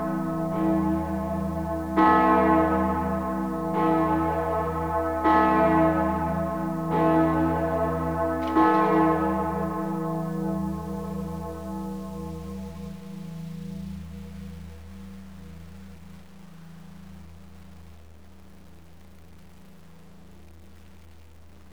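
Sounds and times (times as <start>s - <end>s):
full peal of church bells at Easter: 0.0s - 14.9s.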